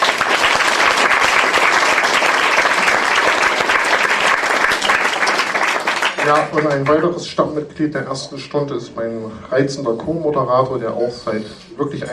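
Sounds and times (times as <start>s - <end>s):
audience applause: 0.0s - 7.2s
speech: 6.3s - 12.1s.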